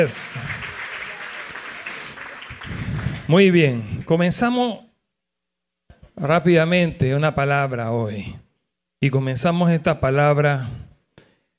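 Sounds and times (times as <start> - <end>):
speech: 0.0 - 0.7, 3.3 - 4.9, 6.2 - 8.4, 9.0 - 10.8
audience applauding loudly: 0.0 - 3.8.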